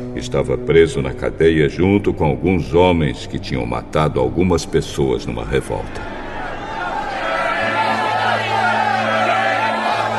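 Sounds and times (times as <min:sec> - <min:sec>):
speech: 0:00.2 - 0:06.2
crowd murmuring: 0:05.9 - 0:10.1.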